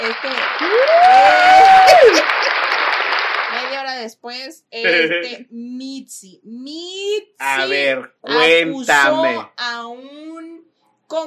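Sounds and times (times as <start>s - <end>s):
speech: 0.0s - 1.3s, 4.0s - 11.2s
applause: 0.0s - 3.9s
laughter: 1.9s - 3.2s, 4.8s - 5.3s, 7.4s - 9.4s.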